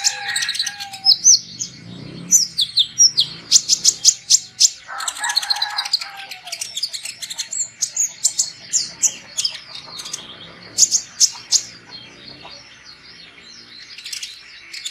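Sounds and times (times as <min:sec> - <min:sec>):
sunbird calls: 0:00.0 - 0:14.8.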